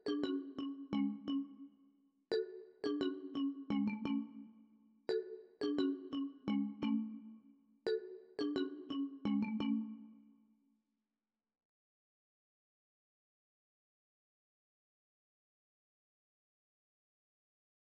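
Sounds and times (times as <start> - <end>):
F# minor plucked synth melody loop at 173 BPM: 0.0 - 1.7, 2.3 - 10.1.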